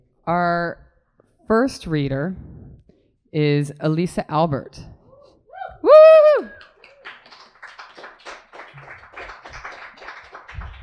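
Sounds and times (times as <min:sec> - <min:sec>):
speech: 0:00.3 - 0:00.8, 0:01.5 - 0:02.5, 0:03.3 - 0:04.9
audience applause: 0:06.4 - 0:10.8.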